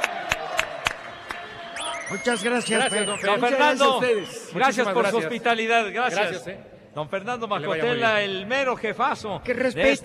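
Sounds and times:
audience applause: 0.0 - 3.2
speech: 2.1 - 10.0.

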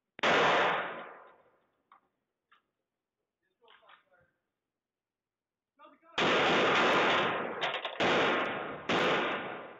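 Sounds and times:
police rifle gunshots in footage of a porch shooting: 0.2 - 1.3, 6.2 - 9.7.

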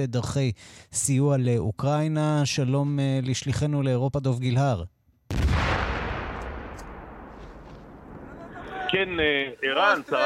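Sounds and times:
speech: 0.0 - 5.0, 8.9 - 10.2
gunfire in background: 5.3 - 8.6
laughter: 8.2 - 10.2.

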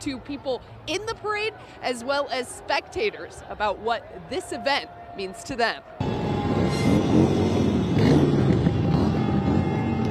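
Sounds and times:
speech: 0.0 - 6.1
engines revving and rumbling: 6.0 - 10.0.

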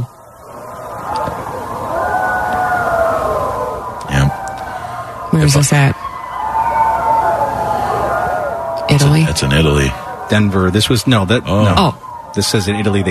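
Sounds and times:
people howling outside at night: 0.0 - 13.0
speech: 5.4 - 6.0, 9.2 - 13.0.

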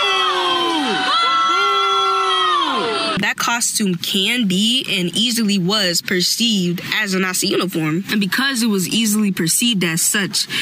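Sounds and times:
crowd of young voices booing: 0.0 - 3.2
speech: 3.4 - 10.6.

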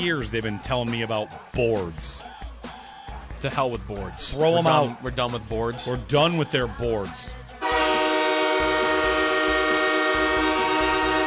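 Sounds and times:
speech: 0.0 - 2.4, 3.4 - 7.4
train horn: 7.6 - 11.2.

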